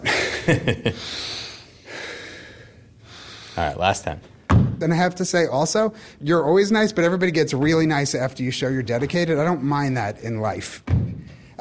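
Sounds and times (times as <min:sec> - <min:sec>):
speech: 0:00.5 - 0:01.4, 0:03.6 - 0:11.0
deep breath taken during strenuous exercise: 0:00.9 - 0:03.6, 0:11.2 - 0:11.5.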